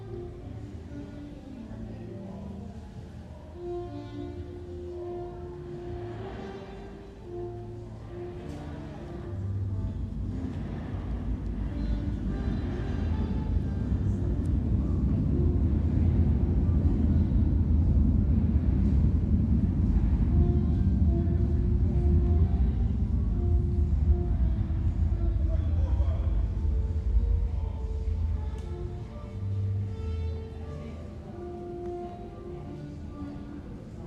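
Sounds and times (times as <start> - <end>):
commuter train approaching the platform: 1.8 - 34.0.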